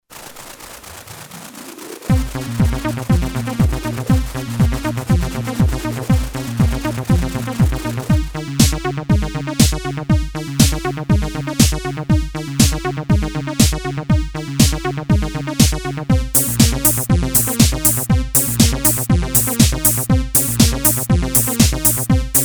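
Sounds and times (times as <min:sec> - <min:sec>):
electro music: 0:01.1 - 0:22.4.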